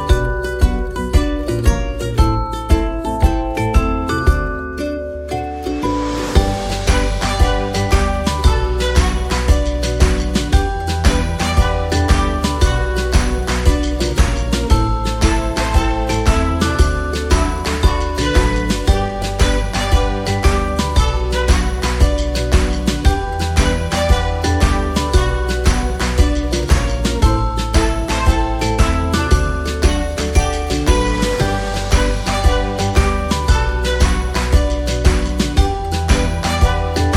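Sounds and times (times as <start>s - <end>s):
slow rolls music: 0.0s - 37.1s.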